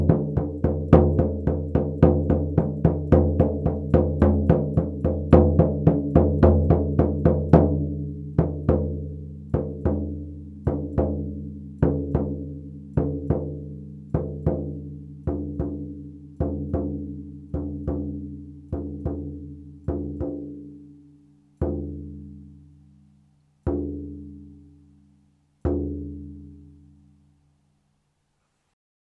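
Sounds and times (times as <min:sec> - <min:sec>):
drum: 0:00.0 - 0:20.7.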